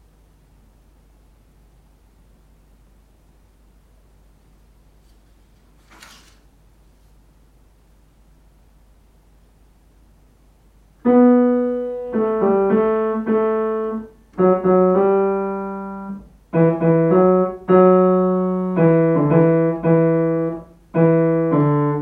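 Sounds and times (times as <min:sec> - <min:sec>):
piano: 0:11.0 - 0:22.0.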